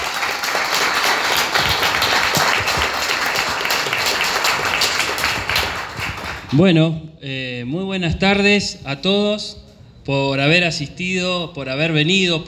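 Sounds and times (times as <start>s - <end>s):
audience applause: 0.0s - 6.5s
speech: 6.5s - 12.4s.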